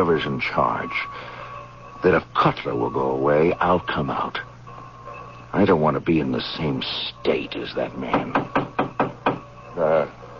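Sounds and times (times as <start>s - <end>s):
speech: 0.0s - 1.4s, 2.0s - 4.5s, 5.5s - 8.6s, 9.8s - 10.2s
knocking on a door: 8.1s - 9.5s.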